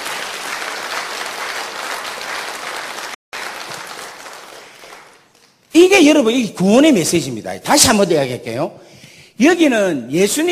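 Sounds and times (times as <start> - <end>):
audience applause: 0.0 - 5.4
speech: 5.8 - 8.8, 9.4 - 10.5.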